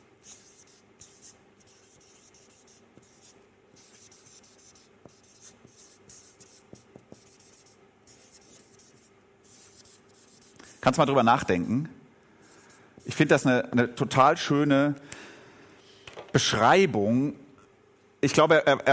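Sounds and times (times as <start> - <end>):
handwriting scratching: 0.0 - 11.0
speech: 10.8 - 12.0, 13.2 - 15.1, 16.4 - 17.4, 18.2 - 18.9.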